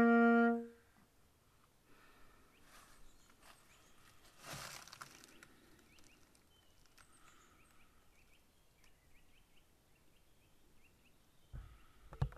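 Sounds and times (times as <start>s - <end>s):
musical improvisation: 0.0s - 0.8s.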